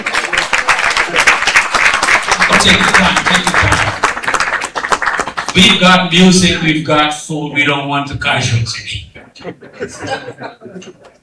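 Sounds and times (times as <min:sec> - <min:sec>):
laughter: 0:00.0 - 0:01.6, 0:02.4 - 0:04.4, 0:09.2 - 0:11.2
audience clapping: 0:00.0 - 0:06.6
speech: 0:02.6 - 0:03.9, 0:05.6 - 0:11.1.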